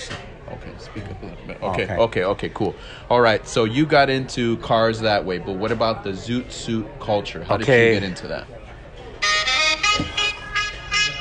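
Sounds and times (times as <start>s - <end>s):
speech: 1.0s - 8.6s
phone ringtone melody: 9.2s - 11.2s.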